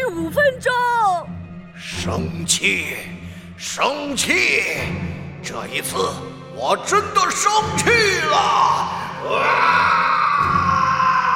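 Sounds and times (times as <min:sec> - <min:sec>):
speech: 0:00.4 - 0:00.8, 0:01.8 - 0:10.5
voice imitating a monster roar: 0:08.4 - 0:11.3.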